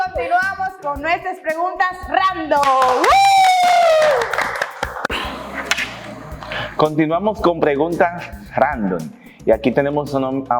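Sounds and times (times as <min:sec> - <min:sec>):
speech: 0:00.2 - 0:03.3, 0:06.8 - 0:10.5
audience applause: 0:02.6 - 0:06.8.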